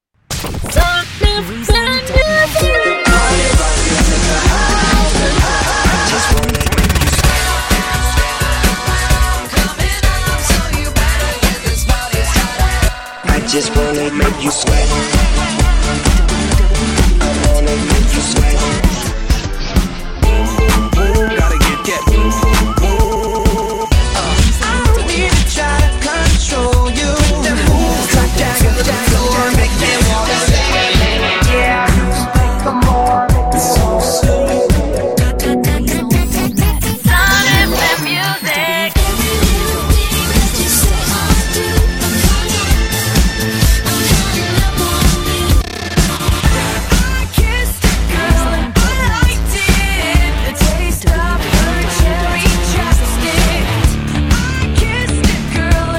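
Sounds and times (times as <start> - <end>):
montage music: 0.8 - 55.9.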